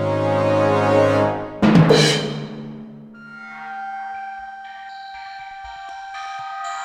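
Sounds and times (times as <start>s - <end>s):
fight music: 0.0s - 3.3s.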